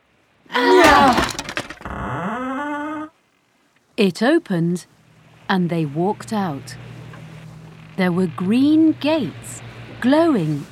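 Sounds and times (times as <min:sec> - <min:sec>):
table banging against a door: 0:00.8 - 0:01.9
speech: 0:04.0 - 0:06.9, 0:08.0 - 0:10.7.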